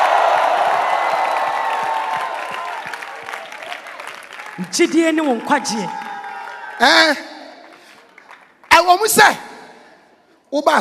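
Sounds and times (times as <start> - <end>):
audience cheering and shouting: 0.0 - 7.4
audience clapping: 0.0 - 9.0
speech: 4.6 - 6.0, 6.8 - 7.3, 8.9 - 9.5, 10.5 - 10.7.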